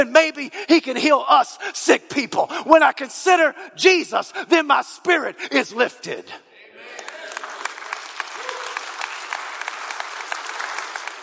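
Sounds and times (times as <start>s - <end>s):
speech: 0.0s - 7.0s
audience clapping: 6.9s - 11.2s.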